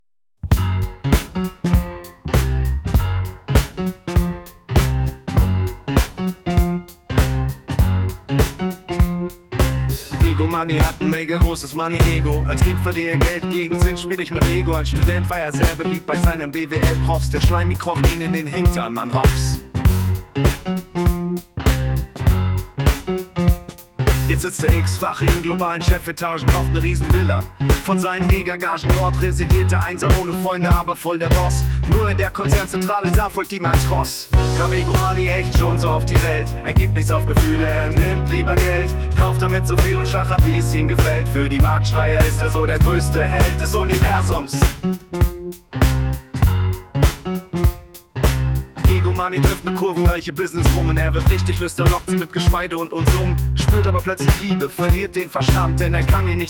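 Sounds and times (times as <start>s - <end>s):
jazz rap music: 0.4s - 56.4s.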